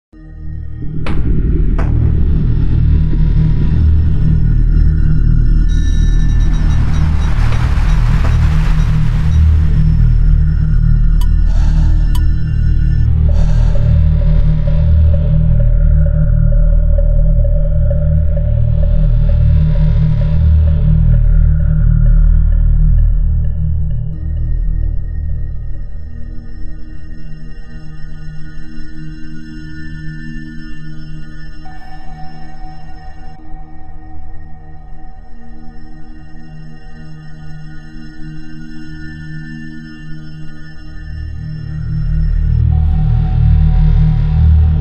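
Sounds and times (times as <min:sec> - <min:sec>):
horror music: 0:00.2 - 0:44.7.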